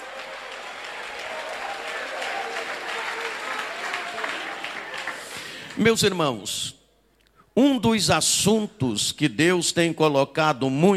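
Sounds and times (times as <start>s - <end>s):
crowd clapping: 0.0s - 6.3s
mixed voices calling out and praising: 0.0s - 6.4s
speech: 5.8s - 6.8s, 7.6s - 10.9s.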